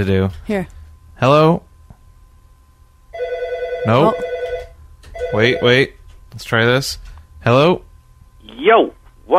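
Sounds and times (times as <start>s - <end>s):
speech: 0.0s - 1.7s, 3.8s - 4.2s, 5.3s - 7.9s, 8.5s - 9.3s
telephone ringing for incoming call: 3.1s - 5.9s.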